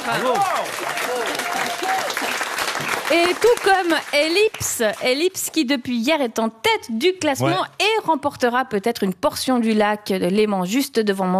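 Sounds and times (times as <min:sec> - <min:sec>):
studio audience applause on a French-language quiz show: 0:00.0 - 0:05.6
speech: 0:00.1 - 0:11.3.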